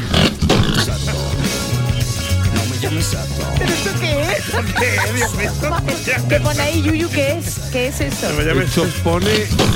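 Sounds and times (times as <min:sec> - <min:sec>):
pig grunting sound effect: 0:00.0 - 0:03.1, 0:09.2 - 0:09.7
laughter: 0:00.7 - 0:07.5
speech: 0:03.0 - 0:09.7.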